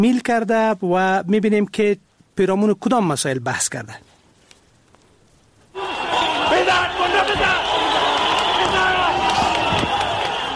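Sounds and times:
speech: 0.0 - 4.1
stadium spectators cheering and shouting: 5.7 - 10.5.

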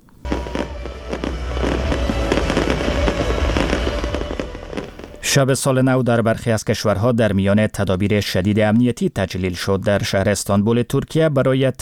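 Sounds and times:
New Year fireworks exploding: 0.0 - 5.3
speech: 5.3 - 11.7.

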